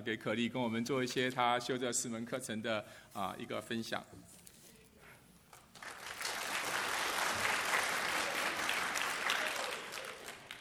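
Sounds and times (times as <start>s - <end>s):
speech: 0.0s - 4.4s
applause: 5.6s - 10.6s.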